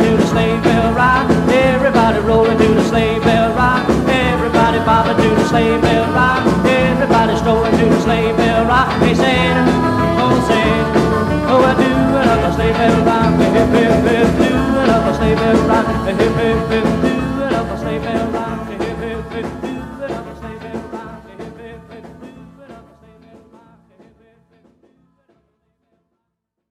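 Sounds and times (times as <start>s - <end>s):
rock music with sleigh bells: 0.0s - 20.9s.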